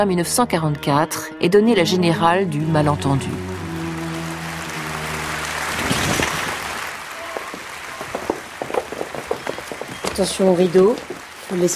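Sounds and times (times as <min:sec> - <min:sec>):
speech: 0:00.0 - 0:03.6, 0:10.2 - 0:11.7
sustained musical chord: 0:00.4 - 0:07.1
theatre audience in Paris applauding actors on stage: 0:03.4 - 0:11.7.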